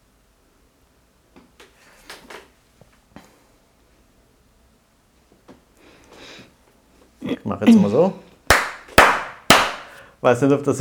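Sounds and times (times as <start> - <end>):
speech: 7.5 - 8.2, 10.2 - 10.7
hand clapping: 8.5 - 10.0.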